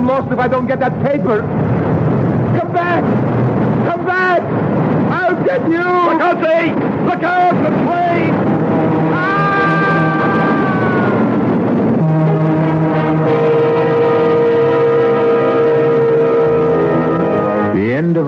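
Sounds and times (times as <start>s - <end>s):
southbound express train rushing past: 0.0s - 18.2s
speech: 0.1s - 1.7s, 2.8s - 3.4s, 4.1s - 8.6s
southbound express train horn blaring: 8.3s - 18.0s.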